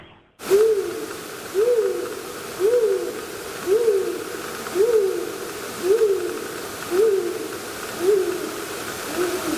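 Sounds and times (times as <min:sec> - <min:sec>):
great gray owl hooting to call in a mate: 0:00.4 - 0:09.5.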